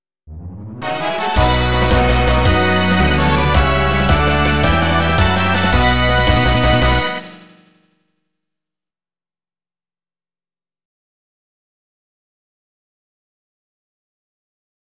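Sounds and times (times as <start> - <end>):
fanfare: 0.3 - 7.8.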